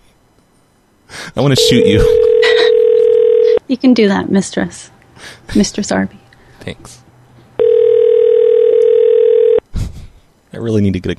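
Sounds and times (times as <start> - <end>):
speech: 1.3 - 2.3, 3.7 - 7.0, 10.6 - 11.1
phone line ringing on the caller's end: 1.5 - 3.6, 7.6 - 9.6.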